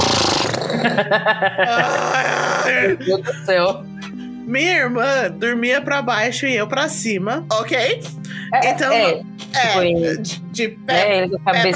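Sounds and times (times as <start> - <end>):
person imitating a horse snorting: 0.0 - 1.0, 1.7 - 2.9
laughter: 0.6 - 4.2, 11.5 - 11.7
speech: 0.8 - 3.9, 4.5 - 11.7.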